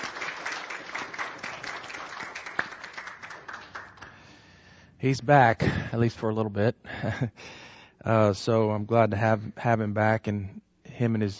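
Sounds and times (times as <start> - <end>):
audience applause: 0.0 - 4.1
speech: 5.0 - 11.3.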